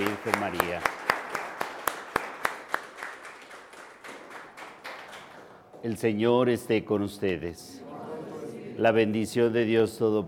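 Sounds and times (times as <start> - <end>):
audience applause: 0.0 - 5.8
speech: 0.2 - 1.0, 5.8 - 7.8, 8.8 - 10.2.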